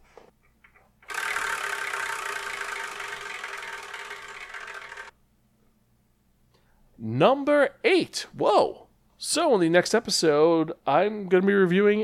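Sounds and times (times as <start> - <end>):
Wheel of Manga prize wheel being spun: 1.0 - 5.1
speech: 7.0 - 12.0.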